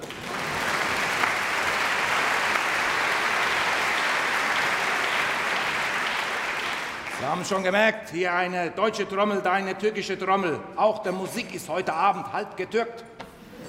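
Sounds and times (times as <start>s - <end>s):
audience applause: 0.0s - 7.6s
speech: 7.2s - 13.1s.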